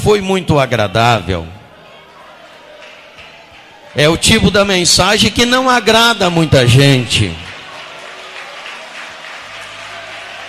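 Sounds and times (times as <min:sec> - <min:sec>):
speech: 0:00.0 - 0:01.6, 0:04.0 - 0:07.5
audience clapping: 0:02.4 - 0:04.7, 0:06.3 - 0:10.4.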